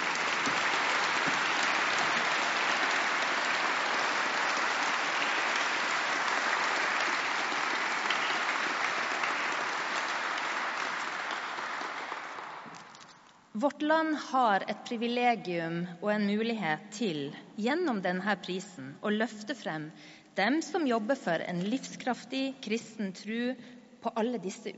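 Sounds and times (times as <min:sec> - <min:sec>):
audience applause: 0:00.0 - 0:13.0
speech: 0:13.6 - 0:24.7.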